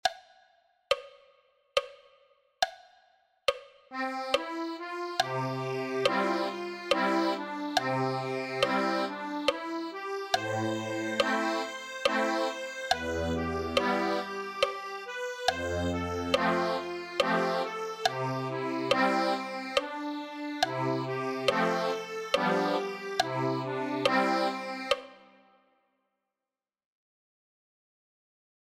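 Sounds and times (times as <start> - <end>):
accordion: 3.9 - 25.4.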